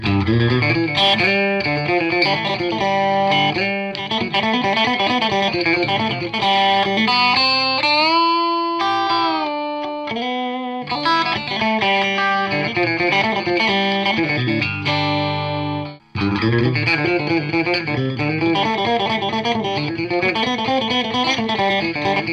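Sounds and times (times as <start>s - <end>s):
string picking: 0.0s - 22.3s.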